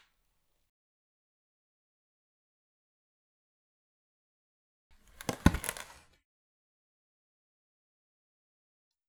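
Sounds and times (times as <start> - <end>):
wooden pallet sounds: 5.0 - 6.2.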